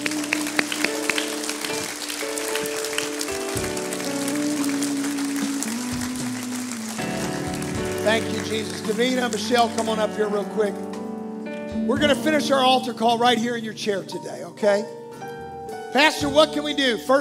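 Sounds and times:
audience applauding in praise: 0.0s - 10.3s
sustained organ chords: 0.0s - 17.1s
speech: 8.1s - 10.9s, 11.9s - 15.0s, 15.9s - 17.1s.

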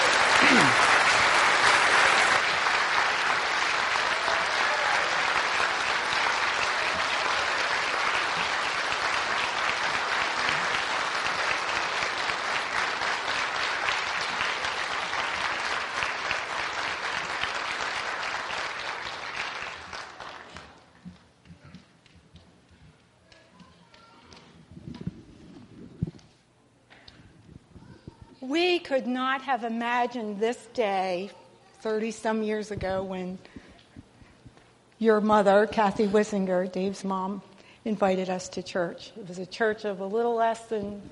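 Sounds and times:
round of applause: 0.0s - 21.0s
speech: 29.4s - 33.5s, 35.0s - 41.0s.

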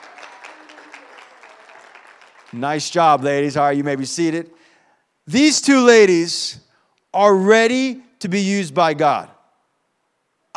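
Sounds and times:
crowd clapping: 0.0s - 3.3s
speech: 2.5s - 4.6s, 5.3s - 9.4s.

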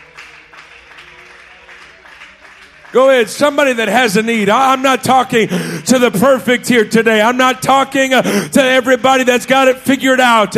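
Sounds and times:
audience clapping hands: 0.0s - 5.4s
speech: 2.9s - 10.5s.

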